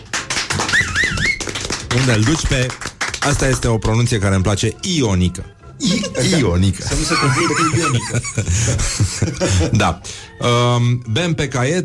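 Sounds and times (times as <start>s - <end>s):
applause: 0.0s - 3.8s
speech: 2.0s - 11.8s
laughter: 6.9s - 10.0s.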